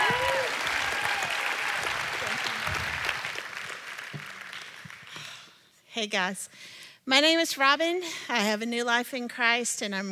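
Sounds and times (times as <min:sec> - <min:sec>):
crowd applause: 0:00.0 - 0:05.5
speech: 0:06.0 - 0:10.1.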